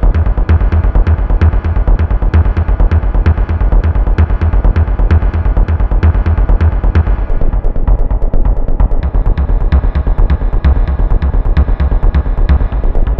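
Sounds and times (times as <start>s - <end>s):
tense action film background music: 0.0s - 13.1s.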